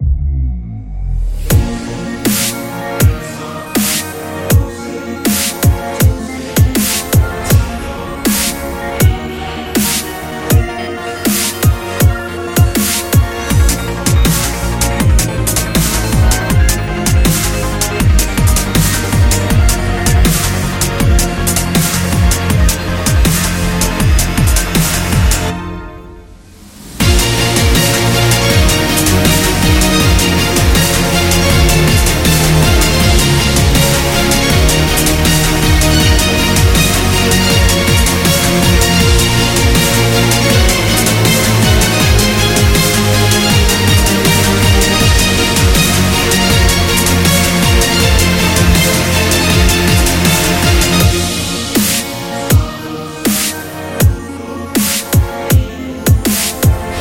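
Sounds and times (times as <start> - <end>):
epic dubstep music: 0.0 - 57.0.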